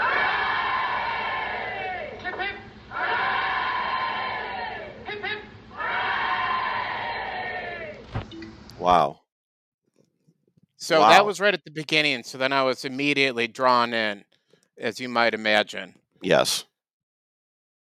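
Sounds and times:
crowd cheering hip hip hooray: 0:00.0 - 0:05.1, 0:05.7 - 0:08.1
speech: 0:08.8 - 0:09.2, 0:10.8 - 0:16.7.

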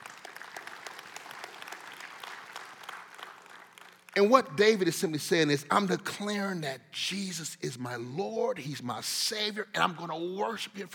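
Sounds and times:
audience clapping hands: 0:00.0 - 0:04.9
speech: 0:04.2 - 0:10.9.

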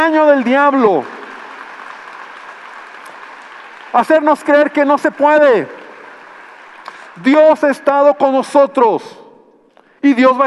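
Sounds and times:
speech: 0:00.0 - 0:01.2, 0:03.9 - 0:05.8, 0:07.2 - 0:09.2, 0:10.0 - 0:10.4
audience applause: 0:00.0 - 0:07.7.

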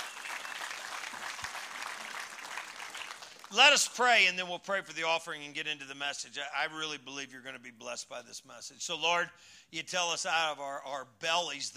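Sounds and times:
audience applauding: 0:00.0 - 0:03.6
speech: 0:03.5 - 0:11.7.

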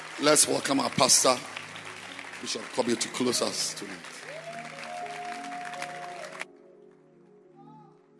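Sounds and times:
audience clapping: 0:00.0 - 0:06.5
speech: 0:00.2 - 0:01.6, 0:02.4 - 0:04.2.

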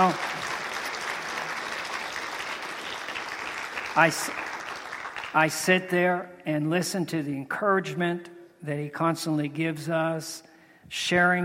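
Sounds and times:
speech: 0:00.0 - 0:00.3, 0:04.0 - 0:04.5, 0:05.3 - 0:11.4
church congregation applauding for its incoming pastors: 0:00.0 - 0:05.7.

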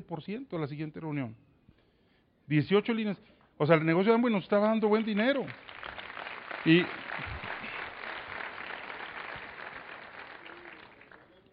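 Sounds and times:
speech: 0:00.1 - 0:01.5, 0:02.5 - 0:05.7, 0:06.6 - 0:07.0
crowd applauding: 0:05.2 - 0:11.5.

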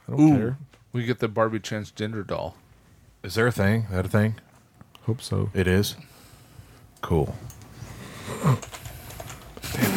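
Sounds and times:
speech: 0:00.1 - 0:02.6, 0:03.2 - 0:06.1, 0:07.0 - 0:07.6
typing on a computer keyboard during an online search: 0:08.4 - 0:09.8.

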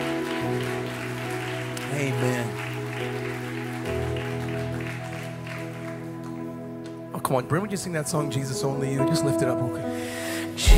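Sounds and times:
audience round of applause: 0:00.0 - 0:07.1
speech: 0:02.0 - 0:02.6, 0:07.2 - 0:10.7.

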